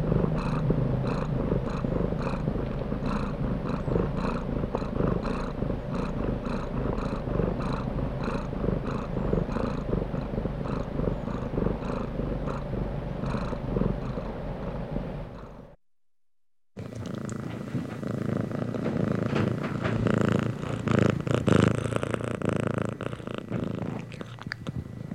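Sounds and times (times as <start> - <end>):
domestic cat purring: 0.0 - 15.8, 16.8 - 25.1.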